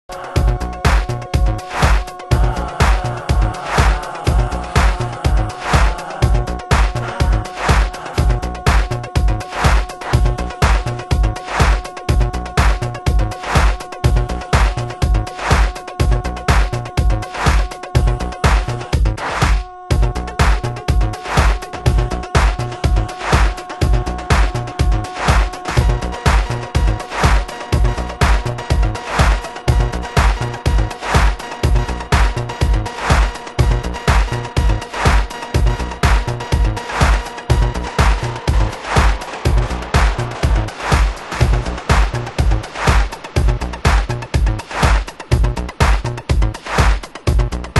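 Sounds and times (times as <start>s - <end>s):
disco music: 0.0s - 47.7s.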